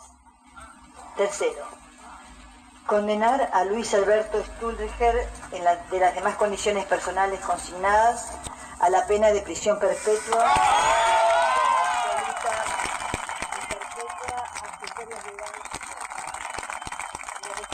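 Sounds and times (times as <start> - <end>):
speech: 1.2 - 1.8, 2.9 - 11.0
crowd celebrating in a courtroom during a verdict reading: 10.3 - 14.9.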